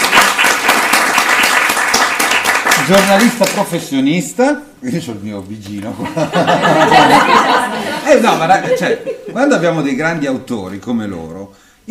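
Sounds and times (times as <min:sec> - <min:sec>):
audience applause: 0:00.0 - 0:03.6
speech: 0:02.9 - 0:11.8
laughter: 0:05.9 - 0:09.8.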